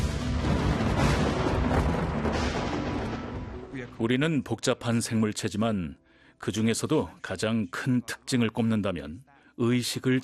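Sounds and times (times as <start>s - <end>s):
rolling thunder: 0.0s - 4.0s
speech: 4.0s - 10.2s.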